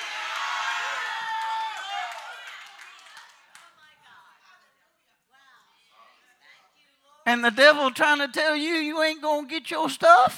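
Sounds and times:
whoops: 0.0s - 2.4s
crowd shouting and cheering: 0.0s - 2.9s
speech: 7.3s - 10.3s.

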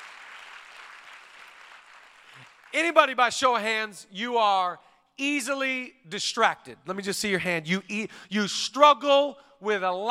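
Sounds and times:
church audience clapping: 0.0s - 3.2s
speech: 2.7s - 10.0s.

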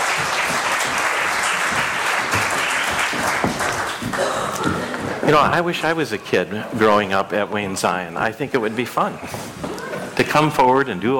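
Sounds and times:
audience applause: 0.0s - 5.2s
speech: 5.3s - 9.5s, 10.3s - 11.1s.

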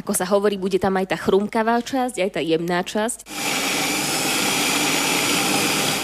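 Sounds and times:
speech: 0.1s - 3.8s
blender puréeing soup: 3.3s - 6.0s.

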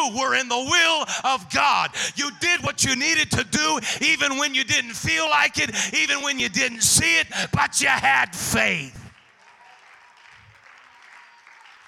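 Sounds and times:
speech: 0.0s - 9.0s
hands clapping: 9.0s - 11.8s.

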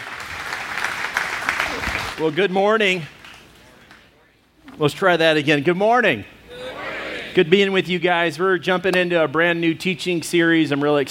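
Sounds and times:
audience applause: 0.0s - 2.5s
speech: 2.2s - 3.2s, 4.8s - 6.4s, 7.4s - 11.1s.

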